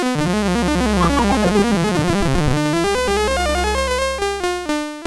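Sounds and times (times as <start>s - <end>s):
MOS 8580 SID chip game music: 0.2s - 4.9s.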